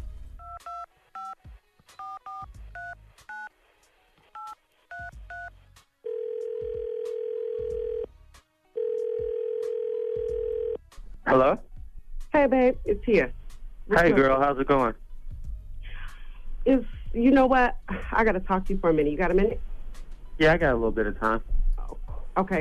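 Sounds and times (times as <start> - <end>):
telephone ringback tones on the line: 4.4 - 8.1, 8.8 - 10.8
speech: 11.3 - 11.7, 12.4 - 15.0, 16.7 - 19.7, 20.4 - 21.5, 22.4 - 22.5.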